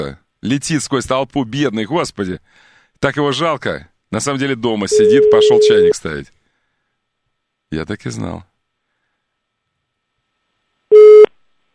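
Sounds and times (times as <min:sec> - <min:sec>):
speech: 0:00.0 - 0:06.4, 0:07.7 - 0:08.5
phone line tone, call not answered: 0:04.9 - 0:06.0, 0:10.9 - 0:11.3.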